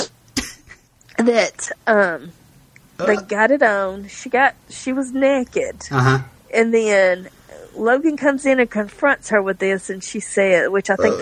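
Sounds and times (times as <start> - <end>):
sneeze: 0.0 - 0.6
speech: 1.2 - 2.4, 3.0 - 11.2
drawn-out voiced sounds: 3.0 - 3.4.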